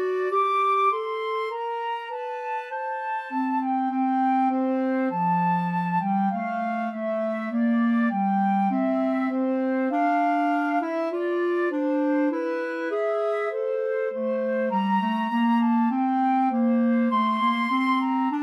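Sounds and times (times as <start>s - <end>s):
flute and clarinet duet: 0.0s - 18.4s.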